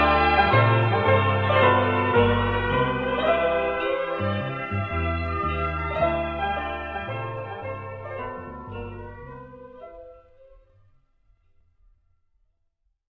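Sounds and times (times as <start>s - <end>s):
instrumental ensemble: 0.0s - 10.2s.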